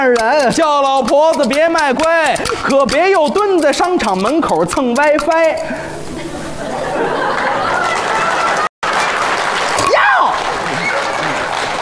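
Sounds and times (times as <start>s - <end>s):
speech: 0.0s - 6.0s
laughter: 2.4s - 3.2s, 6.1s - 8.7s, 10.5s - 11.7s
audience applause: 7.1s - 11.7s.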